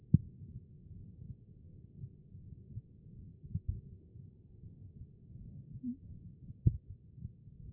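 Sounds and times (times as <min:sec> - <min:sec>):
heart sound: 0:00.1 - 0:00.4, 0:02.7 - 0:03.9, 0:05.0 - 0:07.7.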